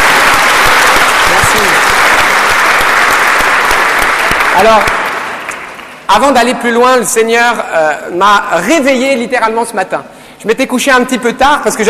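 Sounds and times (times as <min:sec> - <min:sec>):
audience applause: 0:00.0 - 0:06.0
speech: 0:04.6 - 0:05.0, 0:06.1 - 0:11.8.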